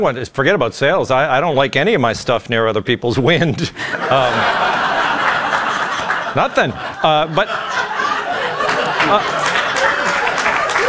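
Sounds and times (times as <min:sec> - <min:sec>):
speech: 0:00.0 - 0:04.7, 0:06.4 - 0:07.7, 0:09.1 - 0:09.4
audience laughing and chuckling: 0:03.4 - 0:10.8
audience clapping: 0:04.5 - 0:07.1, 0:07.7 - 0:10.8.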